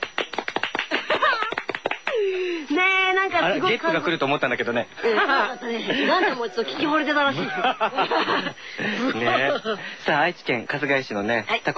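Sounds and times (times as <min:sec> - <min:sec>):
hands clapping: 0:00.0 - 0:02.2
laughter: 0:00.8 - 0:02.4, 0:05.0 - 0:10.0
speech: 0:03.4 - 0:11.7.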